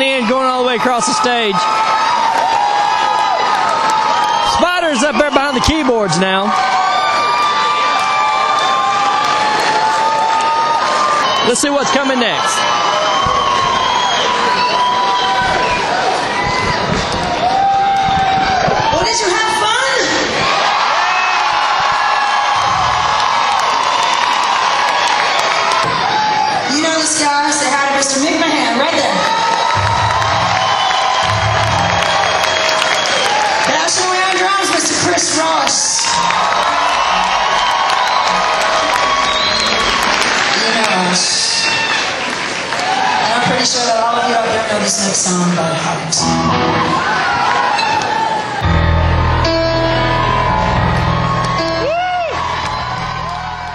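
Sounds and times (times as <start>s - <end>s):
applause: 0.0s - 19.1s, 20.7s - 26.6s, 28.9s - 44.0s
concert crowd cheering and whooping: 0.0s - 27.0s, 28.6s - 43.6s, 46.2s - 53.7s
speech: 0.8s - 2.7s, 4.9s - 6.8s, 11.5s - 13.4s, 27.0s - 29.5s, 33.9s - 37.8s, 40.8s - 41.9s, 43.5s - 47.5s.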